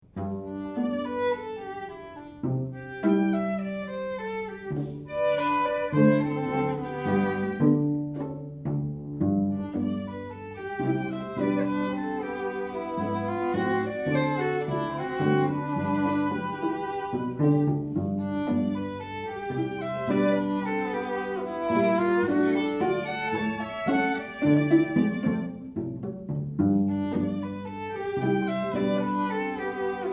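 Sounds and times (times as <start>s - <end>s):
string quartet playing rag: 0.0s - 30.1s.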